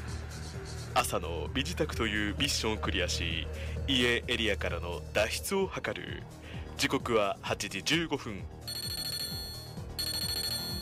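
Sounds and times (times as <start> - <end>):
speech: 1.0 - 8.8
phone ringtone-style alert for an incoming email: 8.7 - 10.8.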